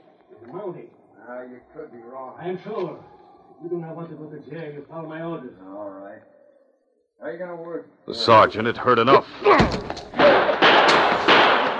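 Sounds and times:
speech: 0.5s - 6.4s, 7.2s - 10.5s
door being kicked open: 9.5s - 11.7s.

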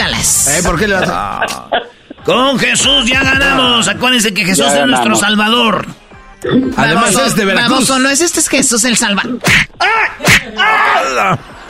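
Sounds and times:
speech: 0.2s - 11.6s
whip crack: 9.4s - 10.5s
drawn-out groaning cry: 9.8s - 11.5s
laughter: 10.2s - 11.6s.

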